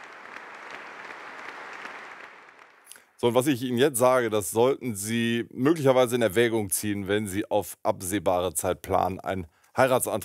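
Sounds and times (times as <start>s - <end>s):
audience applause after concert: 0.0s - 3.0s
speech: 3.2s - 10.2s.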